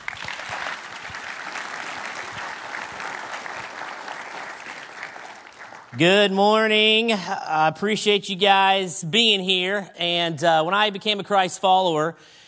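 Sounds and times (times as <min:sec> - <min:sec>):
audience applause welcoming a speaker: 0:00.0 - 0:06.0
speech: 0:06.0 - 0:12.4.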